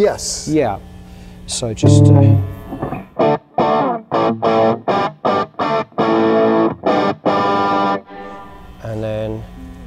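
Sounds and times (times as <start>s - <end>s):
speech: 0.0s - 0.9s, 1.5s - 2.8s
distorted electric guitar crunch through amp tweaker pedal: 1.8s - 8.0s.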